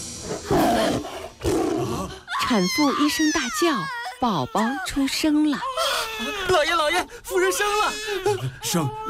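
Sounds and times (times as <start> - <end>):
tiger roaring: 0.4 - 2.1
speech: 2.5 - 9.0.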